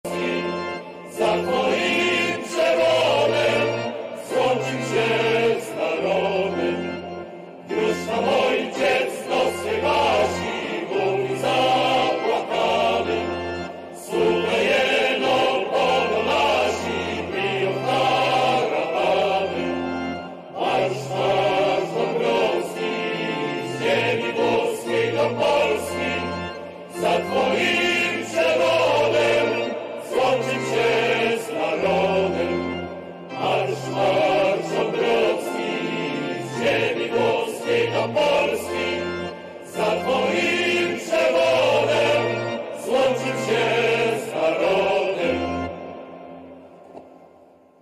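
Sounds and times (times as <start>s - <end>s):
choir singing a hymn: 0.0s - 47.8s.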